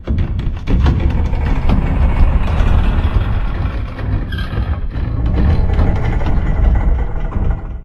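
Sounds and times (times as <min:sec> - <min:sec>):
metal stress creaking: 0:00.0 - 0:07.8.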